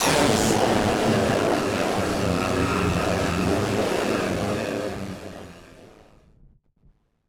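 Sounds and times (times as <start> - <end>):
malfunctioning synth: 0.0 - 6.0.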